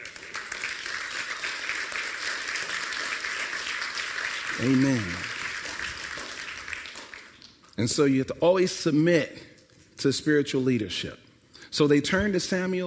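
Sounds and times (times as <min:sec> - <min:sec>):
audience clapping in praise: 0:00.0 - 0:07.8
speech: 0:04.6 - 0:05.3, 0:07.8 - 0:12.8.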